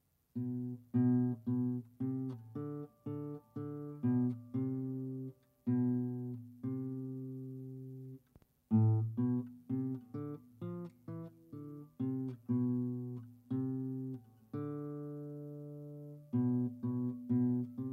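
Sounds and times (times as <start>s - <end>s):
instrumental music: 0.3s - 17.9s.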